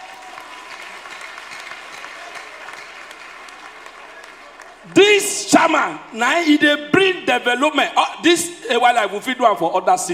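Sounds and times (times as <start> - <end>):
audience applause: 0.0 - 5.0
speech: 4.8 - 10.1.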